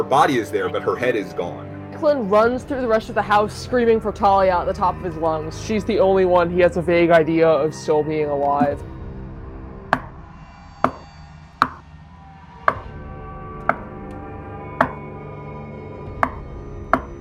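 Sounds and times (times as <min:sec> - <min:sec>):
speech: 0:00.0 - 0:08.9
low humming musical drone: 0:00.0 - 0:17.2
sharp taps: 0:10.8 - 0:11.0, 0:14.8 - 0:15.0.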